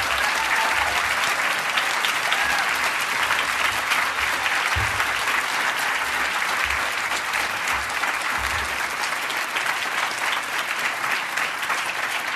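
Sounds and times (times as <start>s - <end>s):
audience applause: 0.0s - 12.3s.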